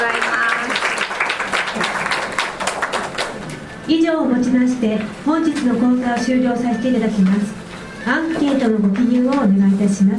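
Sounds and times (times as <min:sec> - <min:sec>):
audience applause at the close of a lecture course: 0:00.0 - 0:03.6
speech: 0:03.9 - 0:10.1.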